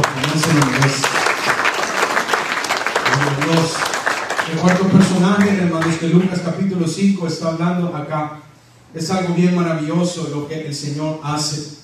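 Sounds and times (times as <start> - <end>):
audience applause: 0.0 - 6.0
speech: 6.0 - 11.8.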